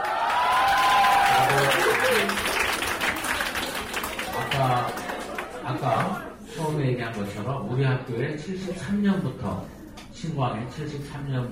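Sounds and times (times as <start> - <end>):
students cheering and applauding: 0.0 - 6.3
speech: 5.7 - 11.5.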